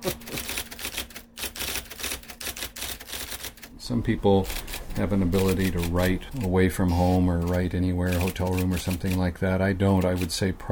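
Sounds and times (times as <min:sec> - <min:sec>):
two-finger typing on keys: 0:00.0 - 0:03.7, 0:04.4 - 0:06.5, 0:07.4 - 0:09.3, 0:10.0 - 0:10.3
speech: 0:03.9 - 0:10.6.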